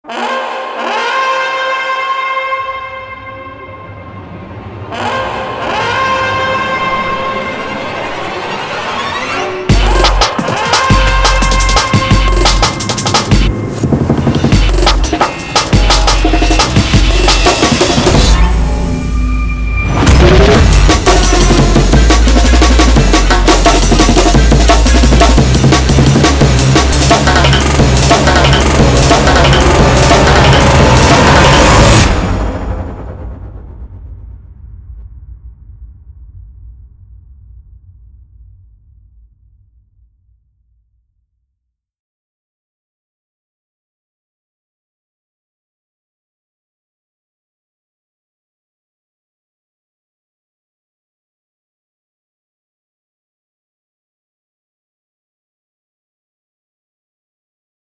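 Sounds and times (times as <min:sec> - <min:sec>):
blockbuster trailer music: 0:00.0 - 0:40.0.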